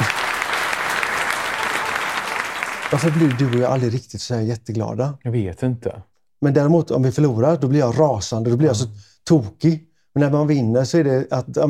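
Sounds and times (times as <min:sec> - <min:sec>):
applause: 0:00.0 - 0:04.0
speech: 0:02.9 - 0:11.6.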